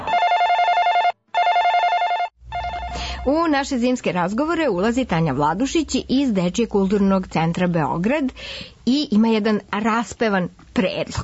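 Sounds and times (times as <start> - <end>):
telephone bell ringing: 0.0 - 3.2
speech: 3.2 - 11.2.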